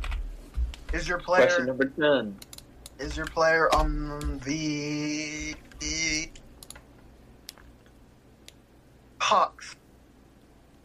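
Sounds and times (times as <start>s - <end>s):
typing on a computer keyboard: 0.0s - 0.2s, 2.4s - 4.4s, 5.4s - 6.8s
wordless voice: 0.9s - 2.4s, 3.0s - 6.4s, 9.2s - 9.8s
speech: 0.9s - 6.4s, 9.3s - 9.8s.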